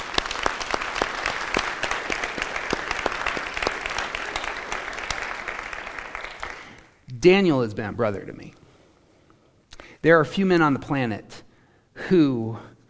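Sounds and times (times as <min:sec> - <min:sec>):
audience applause: 0:00.0 - 0:07.0
speech: 0:07.2 - 0:08.6, 0:10.0 - 0:11.4, 0:12.1 - 0:12.7.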